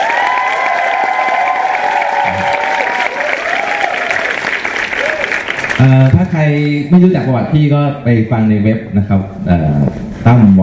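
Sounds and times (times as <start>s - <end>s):
audience applause: 0.0s - 6.2s
speech: 5.8s - 10.6s.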